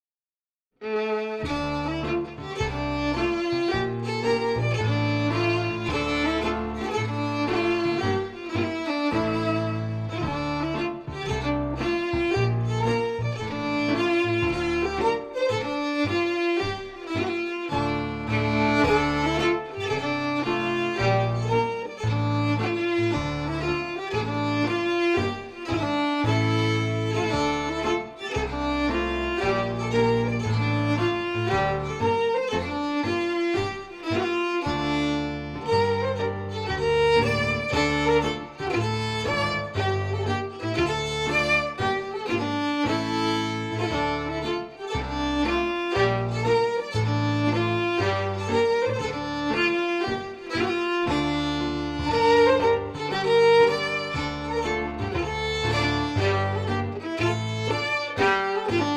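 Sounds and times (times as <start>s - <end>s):
fiddle: 0.8s - 58.9s
piano: 0.8s - 58.9s.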